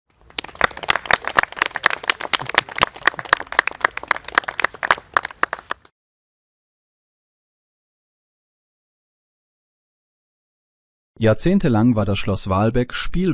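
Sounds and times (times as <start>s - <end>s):
audience applause: 0.2s - 5.9s
speech: 11.2s - 13.3s.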